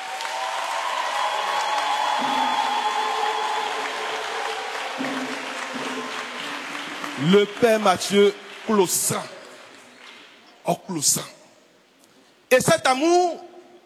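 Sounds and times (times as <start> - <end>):
crowd clapping for a priest: 0.0 - 10.7
speech: 7.2 - 9.4, 10.7 - 11.4, 12.5 - 13.5.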